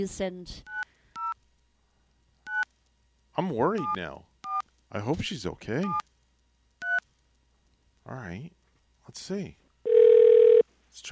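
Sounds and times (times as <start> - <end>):
speech: 0.0 - 0.7, 3.4 - 4.3, 4.9 - 6.1, 8.0 - 9.6, 11.0 - 11.1
telephone dialing tones: 9.9 - 10.6.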